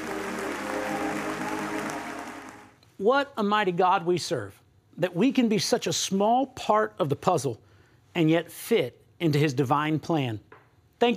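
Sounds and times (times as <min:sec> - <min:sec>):
church congregation applause: 0:00.0 - 0:02.8
speech: 0:03.0 - 0:11.1.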